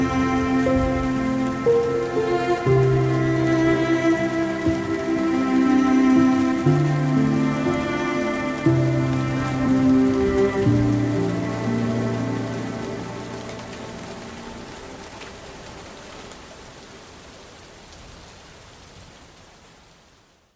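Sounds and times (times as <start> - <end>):
violin playing: 0.0 - 14.6.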